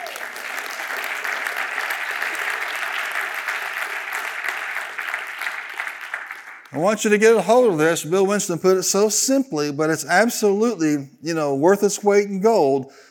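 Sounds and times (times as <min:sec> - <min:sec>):
audience clapping hands: 0:00.0 - 0:07.4
speech: 0:06.7 - 0:13.0.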